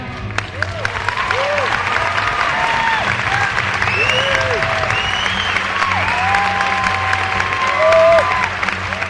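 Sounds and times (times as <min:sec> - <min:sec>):
audience applause in theater: 0:00.1 - 0:09.0
audience whoops and whistles: 0:03.8 - 0:08.5.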